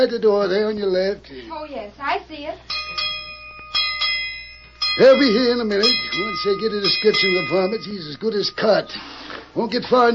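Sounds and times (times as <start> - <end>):
speech: 0.0 - 3.1, 5.0 - 10.1
bell rung by yanking its rope: 2.7 - 9.1.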